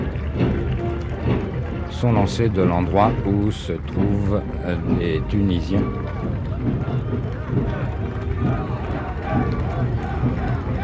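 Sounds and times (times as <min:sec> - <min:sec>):
distant crowd cheering: 0:00.0 - 0:10.8
speech: 0:02.0 - 0:06.4.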